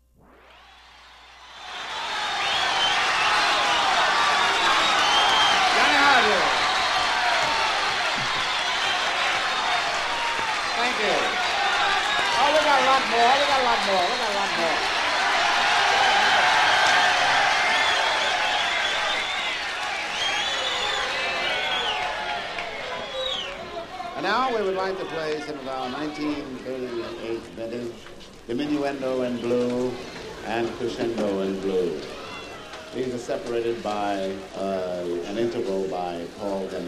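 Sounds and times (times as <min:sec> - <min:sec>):
crowd whistles: 0:00.2 - 0:10.8, 0:15.9 - 0:23.8
crowd cheering and shouting on live jazz recording: 0:00.4 - 0:36.7
speech: 0:25.0 - 0:32.1, 0:32.9 - 0:36.8.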